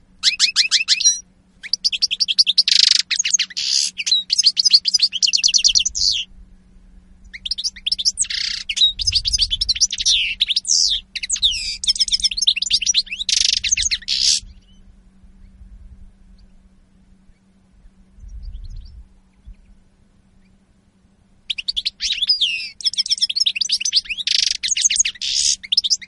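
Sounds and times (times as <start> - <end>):
European goldfinch twittering song: 0.2 - 6.3, 7.2 - 14.8, 21.5 - 26.0
low rumbling: 5.7 - 21.5.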